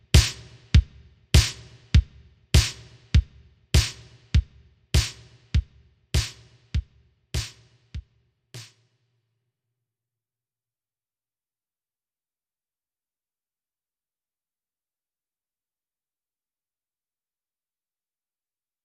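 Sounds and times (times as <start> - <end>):
drums: 0.0 - 8.8.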